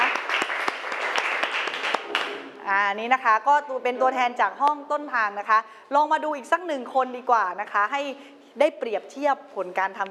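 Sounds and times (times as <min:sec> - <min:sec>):
class applauding: 0:00.0 - 0:02.6
speech: 0:02.7 - 0:10.0.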